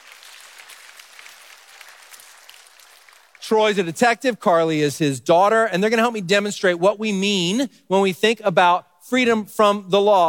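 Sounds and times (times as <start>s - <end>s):
audience applause: 0.0s - 3.6s
speech: 3.5s - 10.2s.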